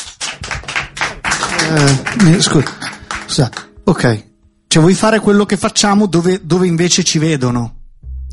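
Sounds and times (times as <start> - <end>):
lukewarm scattered clapping from a small audience: 0.0 - 3.9
speech: 1.6 - 8.3.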